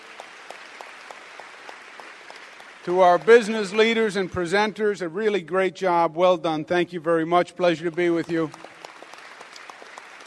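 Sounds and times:
applause for officials at a civic gathering: 0:00.0 - 0:05.1, 0:07.6 - 0:10.2
speech: 0:02.8 - 0:08.7.

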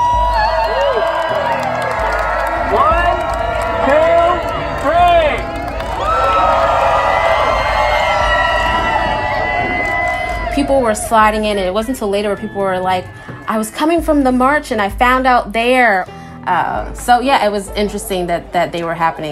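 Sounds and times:
crowd giving a loud cheer: 0:00.0 - 0:14.1
speech: 0:10.7 - 0:19.3.

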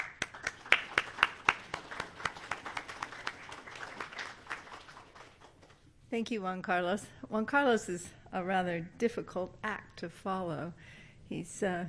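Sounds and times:
faint sparse clapping from a small audience at a City Club gathering: 0:00.0 - 0:05.8
speech: 0:06.1 - 0:11.8.

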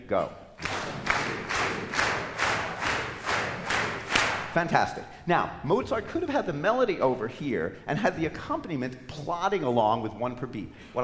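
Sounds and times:
speech: 0:00.1 - 0:00.4, 0:04.5 - 0:11.0
clapping one clap per beat: 0:00.6 - 0:04.6.

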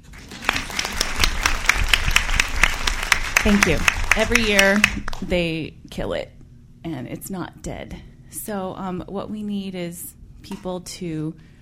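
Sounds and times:
small group clapping: 0:00.0 - 0:05.3
speech: 0:03.4 - 0:11.5.

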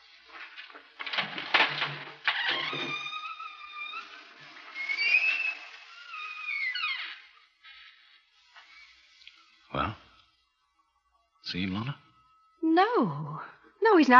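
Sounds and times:
door hinge creaking: 0:01.1 - 0:09.7
speech: 0:11.5 - 0:12.0, 0:12.8 - 0:14.1.

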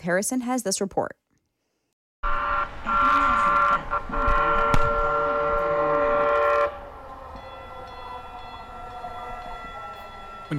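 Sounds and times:
speech: 0:00.0 - 0:01.2, 0:02.2 - 0:03.1
light rail train passing: 0:02.6 - 0:10.5.

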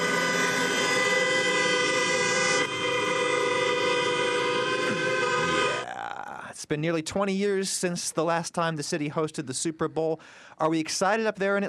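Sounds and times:
car horns honking in a traffic jam: 0:00.0 - 0:05.8
speech: 0:06.7 - 0:11.6.

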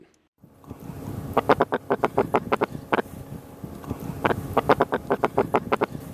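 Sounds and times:
sea robin fish croaking: 0:01.4 - 0:03.1, 0:04.1 - 0:06.0.

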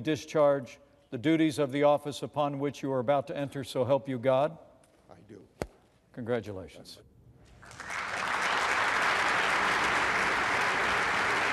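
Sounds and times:
speech: 0:00.0 - 0:04.7, 0:06.2 - 0:07.1
applause in the U.S. Senate chamber: 0:07.6 - 0:11.5.

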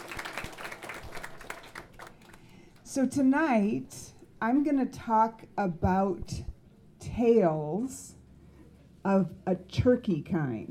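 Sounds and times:
faint audience applause at a storytelling night: 0:00.0 - 0:02.6
speech: 0:02.9 - 0:06.5, 0:07.1 - 0:08.1, 0:09.0 - 0:10.6.

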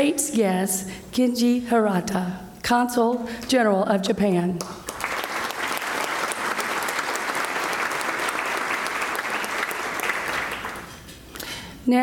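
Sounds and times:
speech: 0:00.0 - 0:04.9, 0:11.9 - 0:12.0
audience applause: 0:04.8 - 0:11.1.

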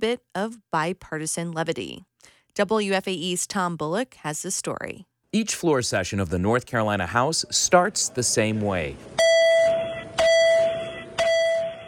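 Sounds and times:
speech: 0:00.0 - 0:09.4
electronic bells calling legislators to seats: 0:09.2 - 0:11.8.

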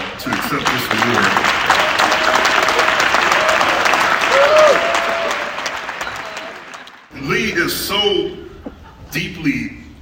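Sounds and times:
audience applause: 0:00.0 - 0:07.1
speech: 0:00.2 - 0:01.6, 0:07.3 - 0:08.4, 0:09.1 - 0:09.8.

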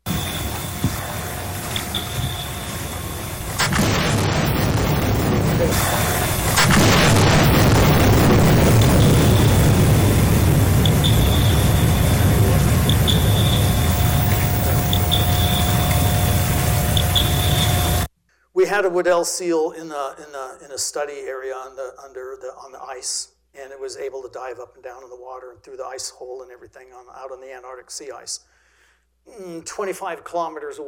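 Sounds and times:
echo sounder pings: 0:00.0 - 0:18.1
underwater air gun blasts: 0:00.0 - 0:18.1
speech: 0:18.8 - 0:28.5, 0:29.3 - 0:30.8.

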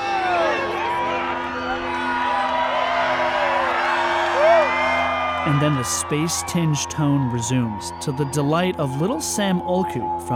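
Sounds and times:
large crowd cheering at eclipse totality: 0:00.0 - 0:09.7
speech: 0:05.5 - 0:10.3.

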